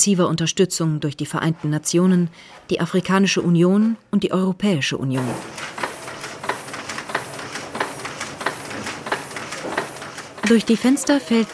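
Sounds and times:
speech: 0:00.0 - 0:05.8, 0:10.5 - 0:11.5
printing presses running in a print workshop: 0:05.2 - 0:11.5.

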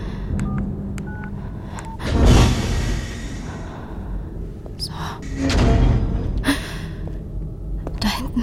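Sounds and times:
low rumble of machinery or traffic: 0:00.0 - 0:08.4
door code keypad beeps forming a melody: 0:00.4 - 0:02.0.

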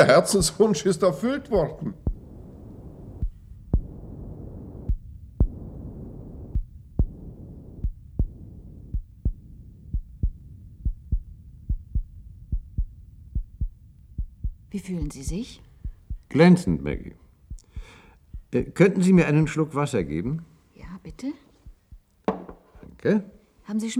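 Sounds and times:
speech: 0:00.0 - 0:02.1, 0:14.8 - 0:15.7, 0:16.3 - 0:17.2, 0:18.5 - 0:21.4, 0:23.0 - 0:23.9
artificial heart beating: 0:00.0 - 0:20.3, 0:21.6 - 0:22.6
low droning hum: 0:01.5 - 0:14.8.

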